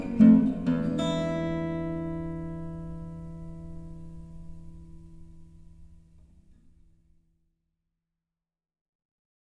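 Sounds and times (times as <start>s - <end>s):
blues music: 0.0s - 6.1s.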